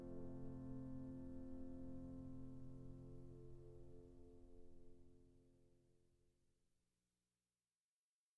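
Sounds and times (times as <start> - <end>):
piano: 0.0 - 5.6.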